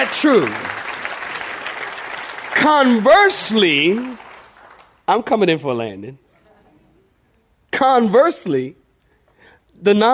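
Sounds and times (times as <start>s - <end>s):
speech: 0.0s - 0.7s, 2.6s - 4.2s, 5.1s - 6.2s, 7.8s - 8.8s, 9.8s - 10.1s
audience clapping hands: 0.0s - 5.2s.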